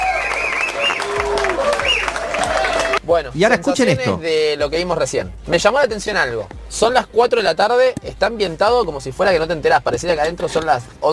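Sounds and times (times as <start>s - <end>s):
crowd clapping: 0.0s - 3.0s
speech: 3.1s - 11.1s.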